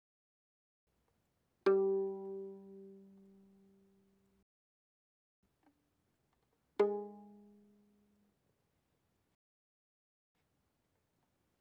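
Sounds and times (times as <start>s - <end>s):
violin pizzicato on G string: 1.7s - 3.9s, 6.8s - 7.9s.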